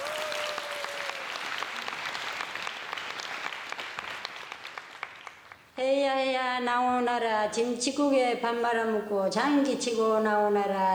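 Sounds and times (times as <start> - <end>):
audience applause: 0.0 - 5.6
speech: 5.8 - 10.9.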